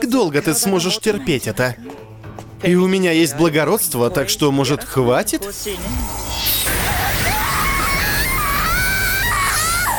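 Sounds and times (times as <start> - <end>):
speech: 0.1 - 2.0, 2.6 - 6.6
woman screaming in pain: 6.7 - 9.9.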